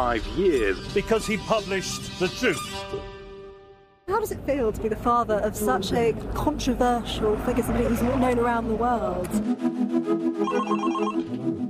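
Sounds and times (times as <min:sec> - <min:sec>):
speech: 0:00.0 - 0:03.1, 0:04.1 - 0:11.3
phone ringing: 0:10.4 - 0:11.3.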